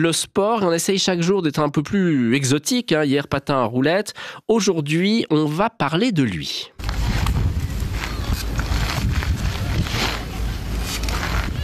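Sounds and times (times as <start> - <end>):
speech: 0.0 - 6.8
unicycle rolling back and forth: 6.8 - 11.6.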